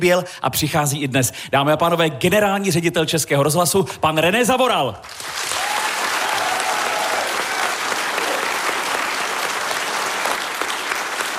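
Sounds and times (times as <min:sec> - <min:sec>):
speech: 0:00.0 - 0:05.6
large audience applause: 0:05.1 - 0:11.3.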